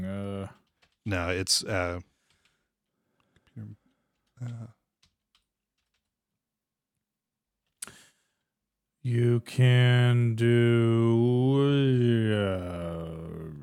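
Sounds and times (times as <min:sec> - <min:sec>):
typing on a computer keyboard: 0:00.0 - 0:06.2
speech: 0:01.0 - 0:02.1, 0:03.6 - 0:03.8, 0:04.4 - 0:04.8, 0:09.0 - 0:12.9.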